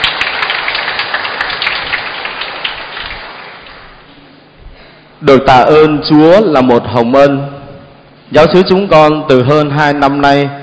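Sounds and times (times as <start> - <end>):
audience applauding: 0.0 - 4.0
speech: 5.2 - 7.6, 8.3 - 10.6.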